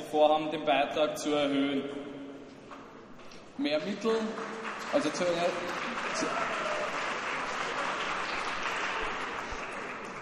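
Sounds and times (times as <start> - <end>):
speech: 0.1 - 2.2, 3.6 - 6.6
audience applause: 3.7 - 10.2.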